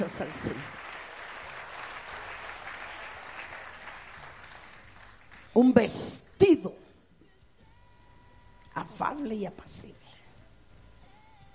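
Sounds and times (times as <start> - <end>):
speech: 0.0 - 0.8, 5.6 - 6.8, 8.8 - 10.0
audience applause: 0.0 - 5.6.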